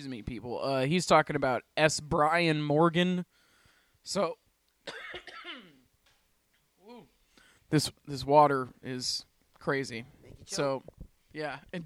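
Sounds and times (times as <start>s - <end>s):
speech: 0.0s - 3.4s, 4.0s - 5.4s, 7.7s - 11.8s
person clearing throat: 4.9s - 5.9s.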